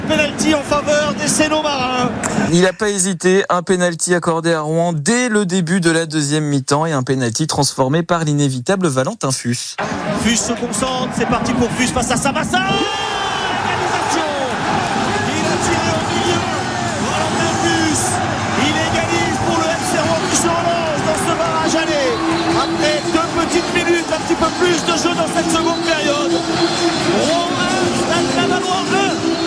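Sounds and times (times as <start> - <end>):
speech: 0.1 - 13.3, 24.5 - 26.5
stadium crowd roaring after a penalty goal: 9.8 - 29.4.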